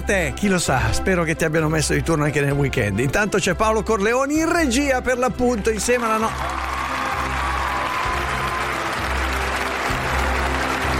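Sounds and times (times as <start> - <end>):
speech: 0.1 - 6.8
crowd applauding: 6.0 - 10.9.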